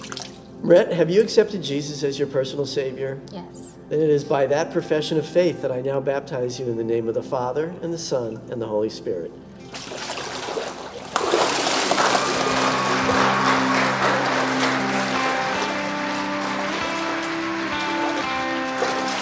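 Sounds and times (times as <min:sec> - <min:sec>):
speech: 0:00.6 - 0:09.5
audience clapping after a baptism: 0:11.1 - 0:19.2.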